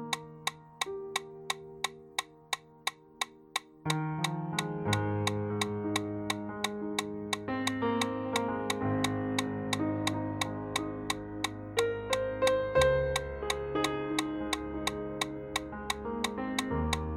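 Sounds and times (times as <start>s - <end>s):
metronome clicking at 175 beats per minute: 0.0s - 17.1s.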